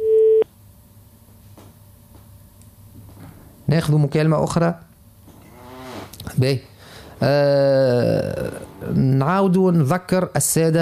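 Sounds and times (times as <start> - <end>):
telephone line beep while connecting a listener's call: 0.0 - 0.4
speech: 3.7 - 4.9, 6.4 - 10.7.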